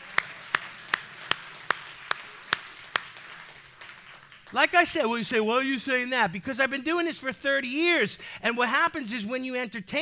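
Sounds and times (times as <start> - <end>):
hand clapping: 0.0 - 4.8
speech: 4.5 - 9.9.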